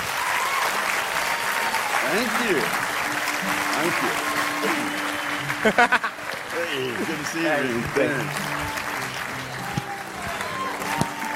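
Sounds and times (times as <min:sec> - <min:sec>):
audience clapping to welcome a speaker at a presentation in Sydney: 0:00.0 - 0:11.3
laughter: 0:00.8 - 0:11.3
speech: 0:02.1 - 0:08.8.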